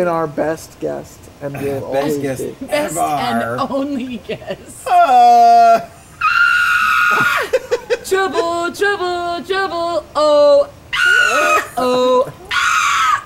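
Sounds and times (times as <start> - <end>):
speech: 0.0 - 5.9, 7.1 - 12.4
goats screaming: 5.4 - 7.6, 10.9 - 13.2
laughter: 7.1 - 8.8.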